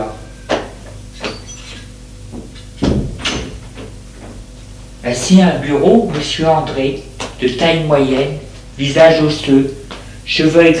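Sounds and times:
door opening: 0:01.2 - 0:03.7
speech: 0:05.1 - 0:10.7.

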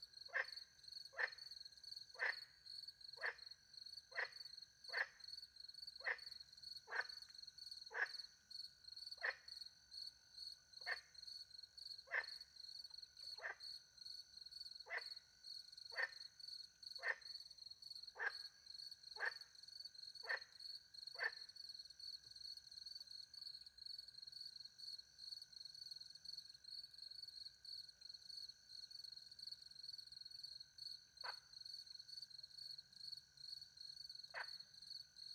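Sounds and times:
frog croaks: 0:00.2 - 0:05.4, 0:06.0 - 0:08.4, 0:09.1 - 0:09.6, 0:10.8 - 0:11.3, 0:11.9 - 0:12.5, 0:13.1 - 0:13.9, 0:14.8 - 0:21.7, 0:31.2 - 0:32.3, 0:33.5 - 0:35.3.

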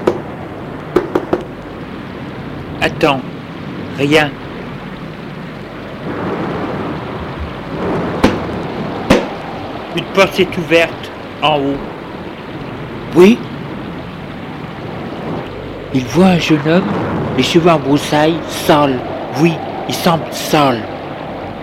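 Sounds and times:
rain: 0:00.0 - 0:21.6
speech: 0:02.8 - 0:03.4, 0:04.0 - 0:04.4, 0:10.0 - 0:11.9, 0:13.2 - 0:13.5, 0:15.9 - 0:20.9
thunder: 0:06.0 - 0:10.1, 0:15.0 - 0:21.6.

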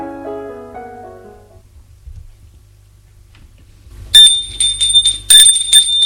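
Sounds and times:
doorbell ringing: 0:04.2 - 0:06.0.

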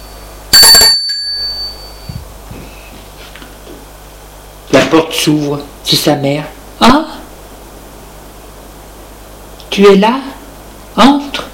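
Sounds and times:
doorbell ringing: 0:00.0 - 0:02.2
speech: 0:04.9 - 0:07.1, 0:09.8 - 0:10.4, 0:11.0 - 0:11.2.

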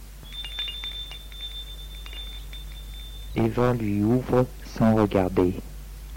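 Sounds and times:
doorbell ringing: 0:00.3 - 0:03.7
speech: 0:03.4 - 0:05.7.

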